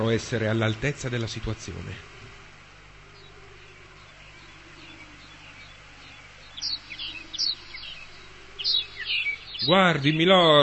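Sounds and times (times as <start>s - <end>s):
speech: 0.0s - 2.2s, 9.7s - 10.6s
low steady hum: 0.0s - 10.0s
caged goldfinch chirping and trilling: 3.1s - 10.6s.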